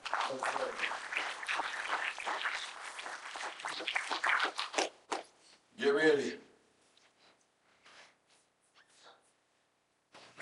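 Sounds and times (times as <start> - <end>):
audience clapping hands: 0.0 - 4.9
speech: 0.3 - 1.2.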